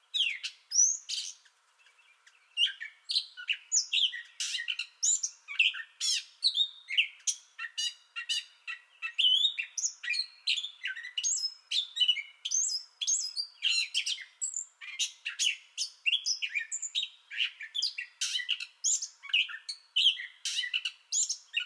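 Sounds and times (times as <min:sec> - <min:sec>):
Gray catbird song: 0:00.0 - 0:21.6.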